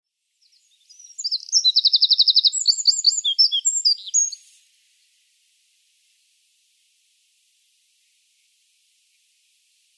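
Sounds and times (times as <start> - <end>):
Eurasian wren song: 0.4 - 5.3.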